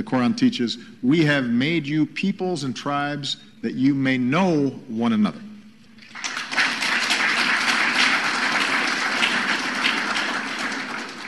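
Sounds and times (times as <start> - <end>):
speech: 0.0 - 5.5
crowd applause: 6.1 - 11.2.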